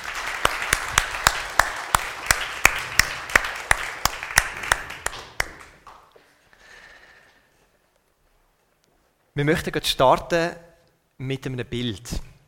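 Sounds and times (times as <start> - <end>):
audience applause: 0.0 - 6.1
rhythmic beat of sharp claps: 0.0 - 6.2
speech: 9.4 - 12.3.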